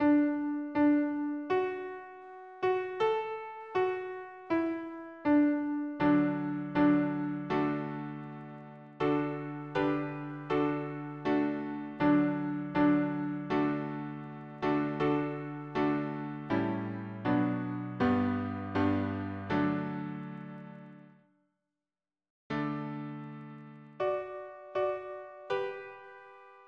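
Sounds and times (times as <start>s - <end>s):
piano harmony: 0.0s - 21.2s, 22.5s - 26.6s.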